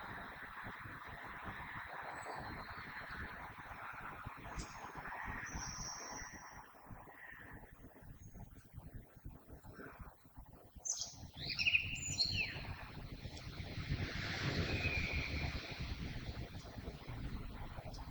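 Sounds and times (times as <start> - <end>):
common blackbird song: 1.2 - 8.6, 10.8 - 18.1.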